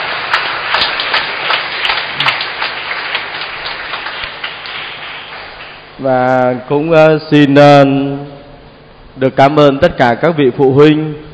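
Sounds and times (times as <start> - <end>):
round of applause: 0.0 - 6.0
speech: 6.0 - 8.3, 9.2 - 11.3.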